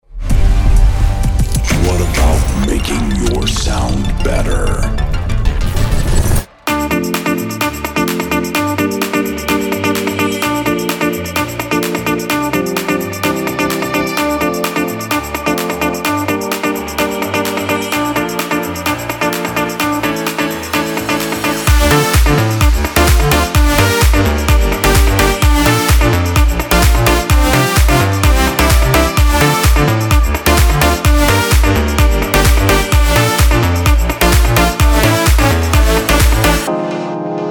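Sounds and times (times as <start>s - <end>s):
electronic dance music: 1.1s - 37.4s.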